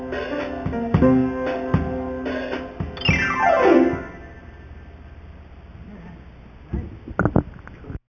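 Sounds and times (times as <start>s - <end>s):
rhythm: 0.0s - 4.6s.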